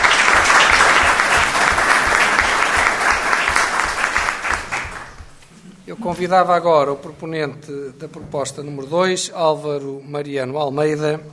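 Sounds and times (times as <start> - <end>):
audience applause: 0.0 - 5.4
speech: 6.0 - 11.3.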